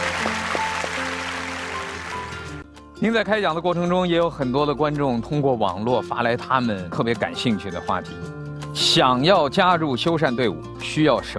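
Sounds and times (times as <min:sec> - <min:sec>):
audience applause: 0:00.0 - 0:02.6
speech: 0:03.0 - 0:11.3.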